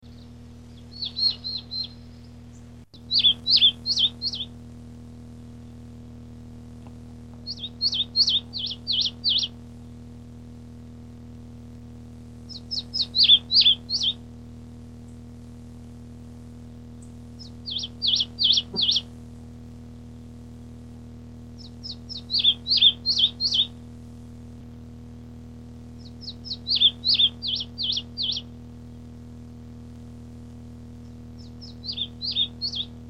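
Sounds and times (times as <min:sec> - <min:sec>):
birdsong: 0:00.0 - 0:04.5, 0:07.4 - 0:09.6, 0:12.5 - 0:14.2, 0:17.0 - 0:19.1, 0:21.6 - 0:23.7, 0:26.0 - 0:28.5, 0:31.0 - 0:33.0.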